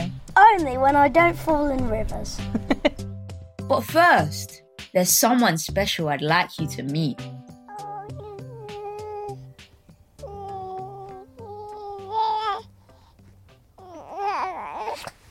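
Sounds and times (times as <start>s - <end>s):
speech: 0.6s - 3.1s, 3.7s - 7.3s
teething baby babbling: 7.7s - 9.5s, 10.2s - 12.8s, 13.8s - 15.2s.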